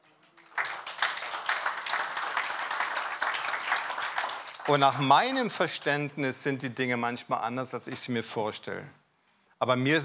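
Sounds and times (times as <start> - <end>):
audience applause: 0.0 - 5.8
speech: 4.7 - 9.0, 9.6 - 10.0.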